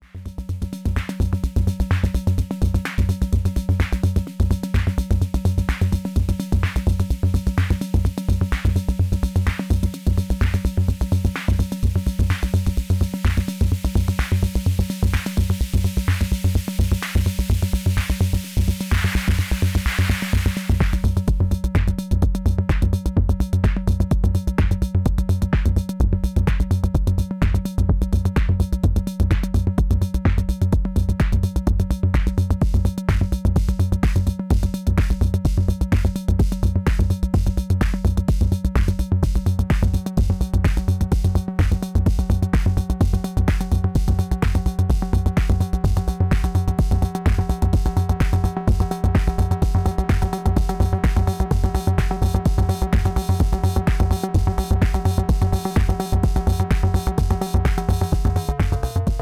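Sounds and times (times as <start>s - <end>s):
house music: 0.1s - 59.2s.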